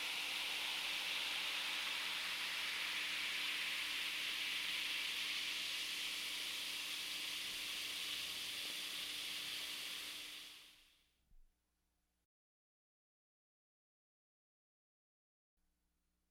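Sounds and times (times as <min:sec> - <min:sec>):
carbonated water fizzling: 0:00.0 - 0:10.9.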